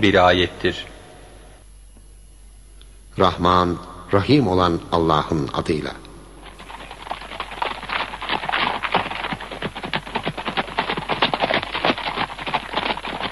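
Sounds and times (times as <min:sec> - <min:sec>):
speech: 0:00.0 - 0:00.9, 0:03.2 - 0:06.0
horses galloping: 0:06.4 - 0:13.3.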